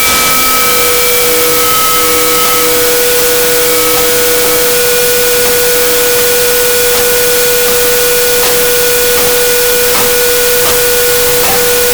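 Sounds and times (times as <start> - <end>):
antique clock striking: 0.2 - 11.9.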